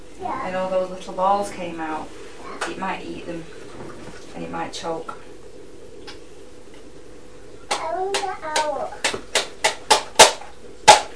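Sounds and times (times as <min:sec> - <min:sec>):
speech: 0:00.2 - 0:05.2, 0:08.0 - 0:09.3
child banging a toy: 0:07.7 - 0:09.2.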